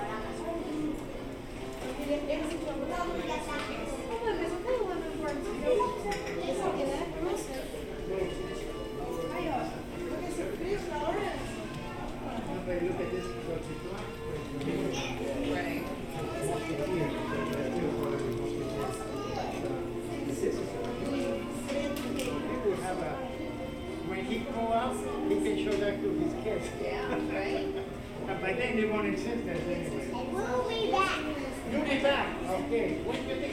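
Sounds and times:
murmur of many voices in a hotel lobby: 0:00.0 - 0:33.5.

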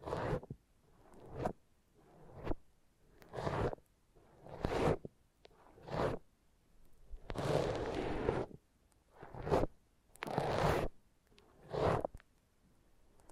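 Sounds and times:
foam rubbed and squeezed in a massage: 0:00.0 - 0:00.5, 0:03.2 - 0:05.1, 0:05.7 - 0:06.2, 0:07.3 - 0:08.6, 0:09.2 - 0:11.0, 0:11.6 - 0:12.1.

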